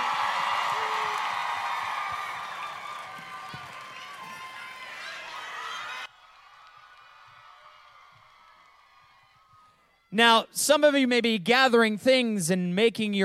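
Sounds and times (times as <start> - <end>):
large crowd applauding and cheering: 0.0 - 9.8
speech: 10.2 - 13.2.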